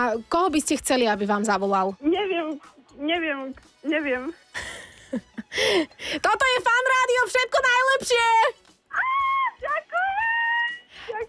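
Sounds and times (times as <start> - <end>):
speech: 0.0 - 10.3
high-pitched excited scream overloading the microphone: 8.9 - 10.9.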